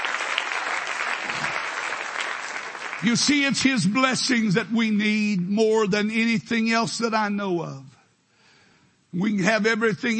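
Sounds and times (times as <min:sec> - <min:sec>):
audience clapping: 0:00.0 - 0:04.1
speech: 0:03.0 - 0:07.9, 0:09.1 - 0:10.1.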